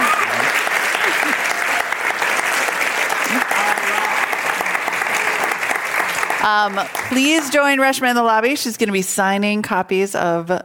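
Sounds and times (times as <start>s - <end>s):
audience applause: 0.0s - 7.9s
speech: 6.4s - 10.6s.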